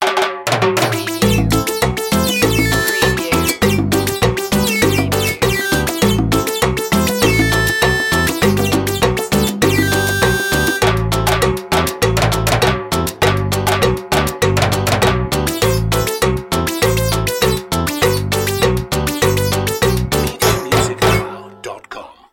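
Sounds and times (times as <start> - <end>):
cheesy cumbia music: 0.0 - 22.0.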